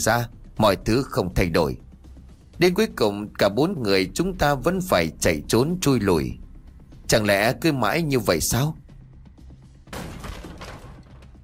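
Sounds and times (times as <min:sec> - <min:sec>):
speech: 0:00.0 - 0:01.8, 0:02.6 - 0:06.4, 0:07.1 - 0:08.8
door suddenly bashed open: 0:09.9 - 0:11.4.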